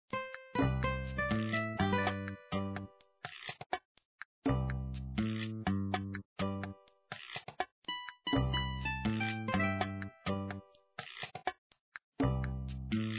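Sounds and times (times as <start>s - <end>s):
build screen music: 0.1s - 3.1s, 4.5s - 7.0s, 7.9s - 10.9s, 12.2s - 13.1s.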